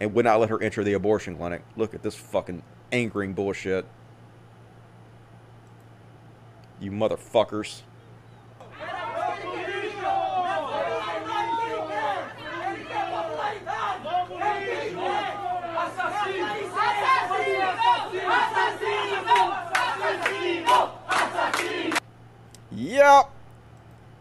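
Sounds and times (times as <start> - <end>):
speech: 0.0 - 4.0, 6.8 - 7.9, 22.8 - 23.4
crowd of protesters screaming and shouting angrily: 8.6 - 22.0.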